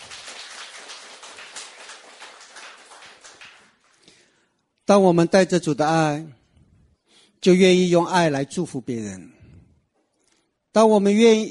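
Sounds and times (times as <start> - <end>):
crowd applauding: 0.0 - 4.0
speech: 4.9 - 6.4, 7.4 - 9.4, 10.8 - 11.4.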